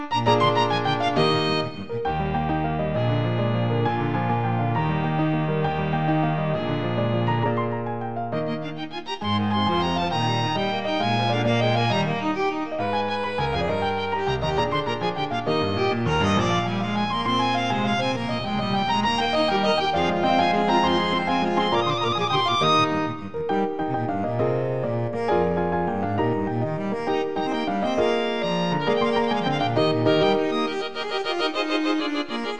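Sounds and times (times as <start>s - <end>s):
anthem played on piano: 0.1s - 32.5s.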